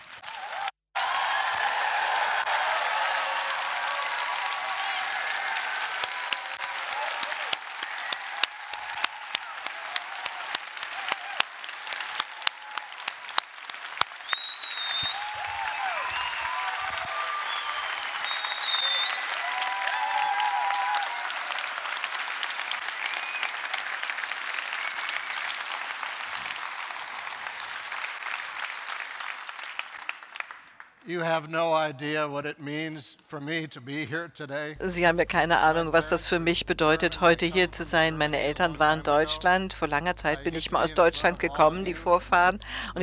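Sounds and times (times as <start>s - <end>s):
euphoric roaring audience applause: 0.0s - 31.0s
speech: 31.1s - 43.0s.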